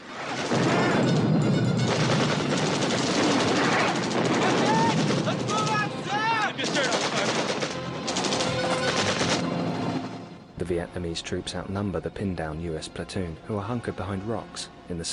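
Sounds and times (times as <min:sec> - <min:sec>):
helicopter banking into a quarry in a Vietnam War film scene: 0:00.1 - 0:10.5
U.S. soldiers' rapid gunfire in a Vietnam War film scene: 0:00.2 - 0:05.9, 0:06.6 - 0:09.6
people shouting in a Vietnam War film scene: 0:03.4 - 0:07.3
speech: 0:10.8 - 0:15.1.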